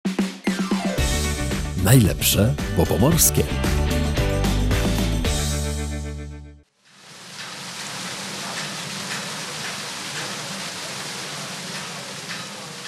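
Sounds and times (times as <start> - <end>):
music: 0.0 - 6.7
speech: 1.9 - 3.8
water flowing and spilling over: 6.9 - 12.8.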